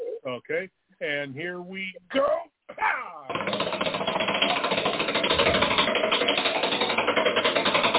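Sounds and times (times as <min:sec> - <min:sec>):
speech: 0:00.2 - 0:04.0
spinning prize wheel pointer clicking on a game-show stage: 0:03.3 - 0:07.9.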